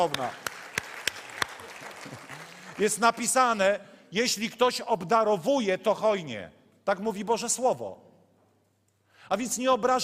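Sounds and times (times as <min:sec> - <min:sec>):
speech: 0:00.0 - 0:00.4, 0:02.8 - 0:08.1, 0:09.3 - 0:10.0
sparse audience applause: 0:00.0 - 0:03.4.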